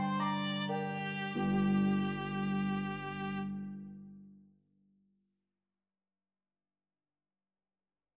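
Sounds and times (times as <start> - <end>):
viola playing: 0.0 - 4.2.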